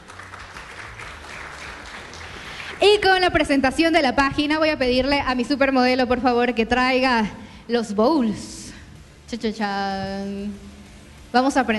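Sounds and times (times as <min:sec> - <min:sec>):
audience applause: 0:00.0 - 0:02.8
speech: 0:02.8 - 0:08.5, 0:09.3 - 0:10.7, 0:11.3 - 0:11.7.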